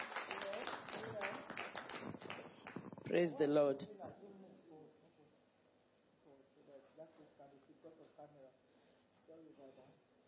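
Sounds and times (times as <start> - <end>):
audience clapping hands: 0.0 - 3.3
speech: 3.1 - 4.3.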